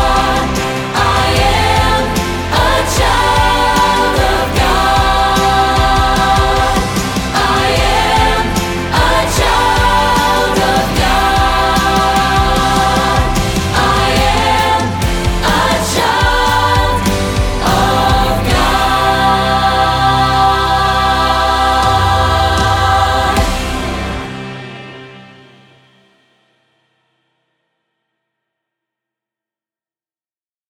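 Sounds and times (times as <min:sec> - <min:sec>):
soprano singing: 0:00.0 - 0:24.4.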